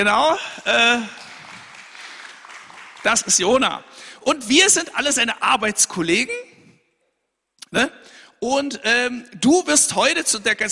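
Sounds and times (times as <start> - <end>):
speech: 0.0 - 1.3, 3.0 - 6.5, 7.7 - 10.7
audience applause: 0.6 - 3.6.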